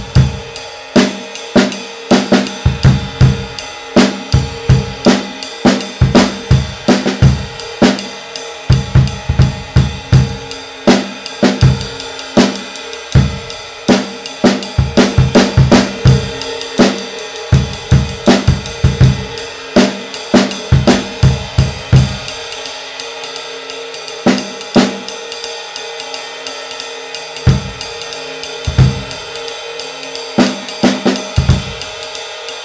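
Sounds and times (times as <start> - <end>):
Custom Dry 20 ride cymbal: 0.0 - 32.6.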